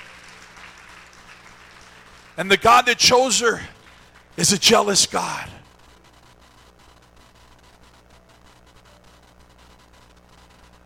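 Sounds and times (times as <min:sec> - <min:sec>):
audience hand clapping: 0:00.0 - 0:04.4
speech: 0:02.4 - 0:03.8, 0:04.4 - 0:05.6.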